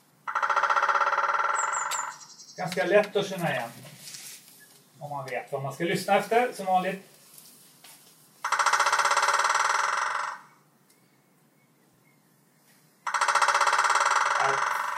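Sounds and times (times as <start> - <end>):
white-backed woodpecker drumming: 0.2 - 3.4, 8.4 - 11.1, 13.0 - 14.9
speech: 2.6 - 3.9, 5.0 - 7.1.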